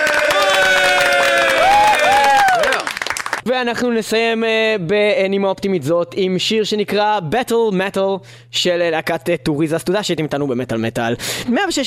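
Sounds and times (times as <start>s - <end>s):
audience applauding and cheering: 0.0s - 3.4s
speech: 3.4s - 11.8s.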